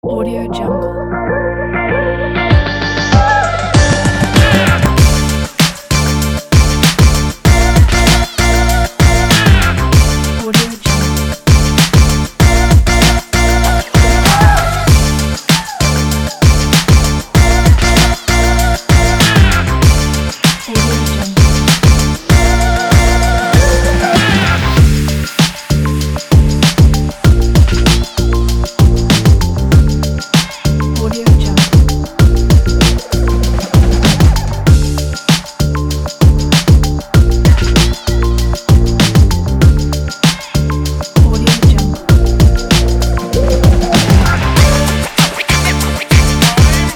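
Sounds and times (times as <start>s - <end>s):
upbeat vlog hip hop music: 0.0s - 46.9s.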